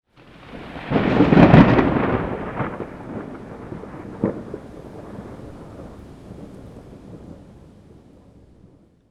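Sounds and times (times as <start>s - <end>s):
thunder: 0.1s - 9.0s.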